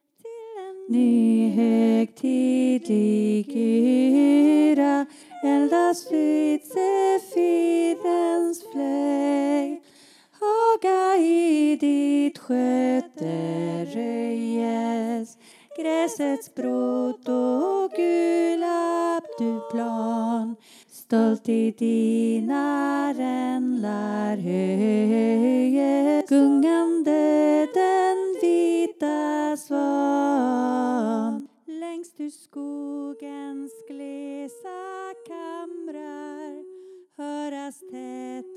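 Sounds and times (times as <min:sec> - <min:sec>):
alto voice singing: 0:00.2 - 0:38.5.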